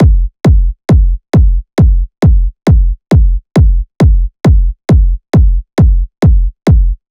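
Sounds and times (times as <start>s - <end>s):
techno kick drum loop at 135 bpm: 0.0s - 7.0s.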